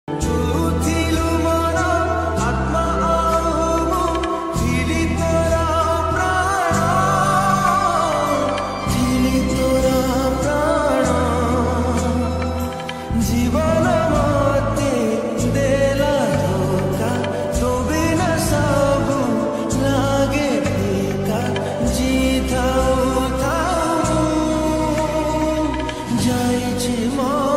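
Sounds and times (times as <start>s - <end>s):
Odia devotional bhajan: 0.1s - 27.5s.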